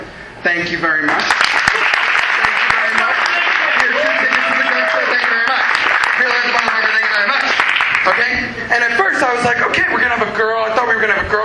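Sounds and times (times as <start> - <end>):
speech: 0.4 - 1.5, 8.0 - 11.4
crowd applauding: 1.1 - 8.3.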